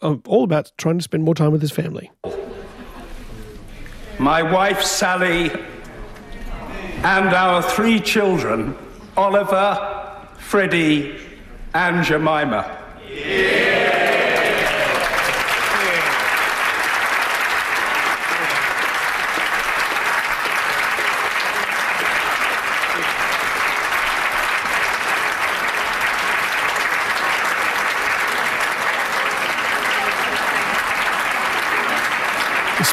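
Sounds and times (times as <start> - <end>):
speech: 0.0 - 2.5, 4.2 - 5.7, 7.0 - 14.0
laughter: 2.2 - 3.5
applause in parliament: 13.3 - 32.9.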